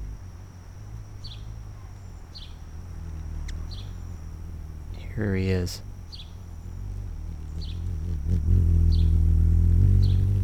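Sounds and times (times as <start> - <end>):
hummingbird wings humming by window: 0.0 - 10.4
speech: 5.2 - 5.9.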